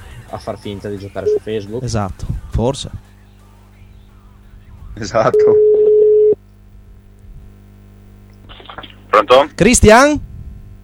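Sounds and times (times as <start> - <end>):
speech: 0.3 - 3.1, 5.0 - 5.7, 9.3 - 10.3
telephone ringback tone on an outgoing call to a studio: 5.4 - 6.4.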